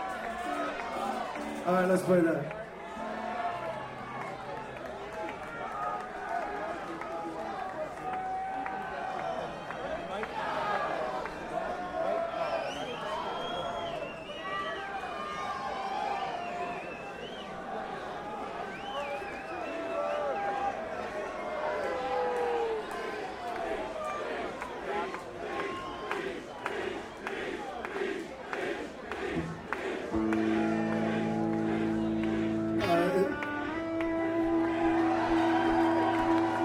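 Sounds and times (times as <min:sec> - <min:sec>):
large crowd shouting and cheering: 0:00.0 - 0:36.6
speech: 0:01.6 - 0:02.6.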